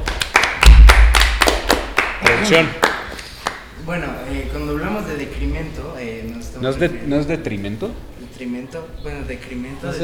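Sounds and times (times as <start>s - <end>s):
applause: 0.0s - 3.7s
speech: 2.4s - 2.8s, 3.9s - 10.0s.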